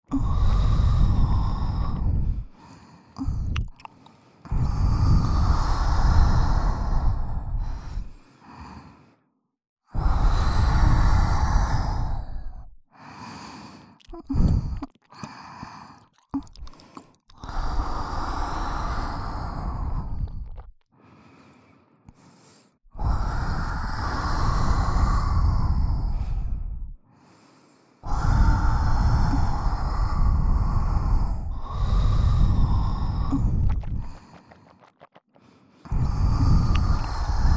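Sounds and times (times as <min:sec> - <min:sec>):
heavy breathing at both ears: 0:00.0 - 0:09.3, 0:10.0 - 0:37.5
wet mouth sounds at both ears: 0:03.2 - 0:04.9, 0:13.8 - 0:19.1, 0:20.0 - 0:20.8, 0:31.6 - 0:37.5.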